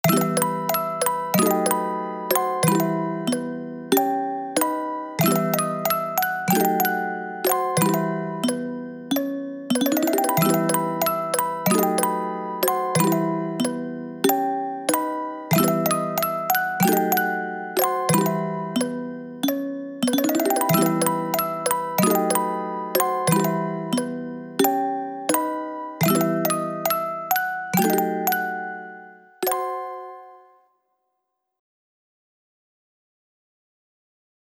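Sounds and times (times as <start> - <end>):
music box: 0.0 - 30.6.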